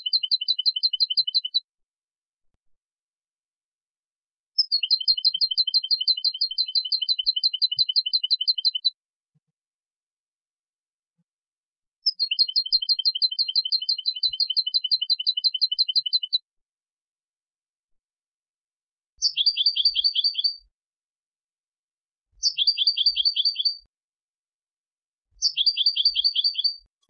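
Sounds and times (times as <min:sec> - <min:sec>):
European goldfinch Carduelis carduelis singing with twittering bursts and trills: 0:00.0 - 0:01.6, 0:04.6 - 0:09.0, 0:12.0 - 0:16.4, 0:19.2 - 0:20.6, 0:22.4 - 0:23.9, 0:25.4 - 0:26.9.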